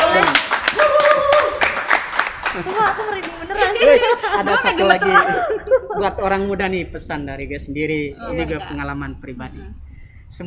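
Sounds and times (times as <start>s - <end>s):
hand clapping applause: 0.0s - 3.4s
speech: 2.6s - 10.4s
laughter: 3.5s - 6.5s.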